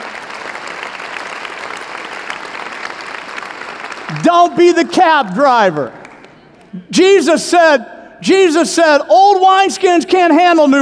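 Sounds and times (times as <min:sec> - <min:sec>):
audience clapping hands: 0:00.0 - 0:06.8
speech: 0:04.1 - 0:06.0, 0:06.7 - 0:10.8.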